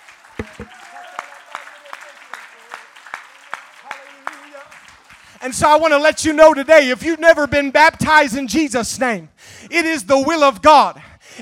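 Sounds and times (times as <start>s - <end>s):
audience clapping hands: 0.0s - 5.5s
speech: 0.6s - 0.8s, 5.4s - 11.3s.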